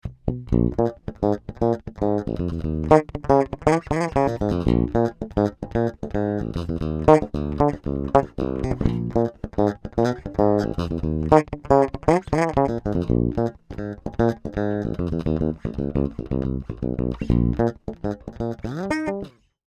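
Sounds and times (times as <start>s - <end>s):
active bass guitar played with fingers on bridge pickup: 0.0s - 19.3s.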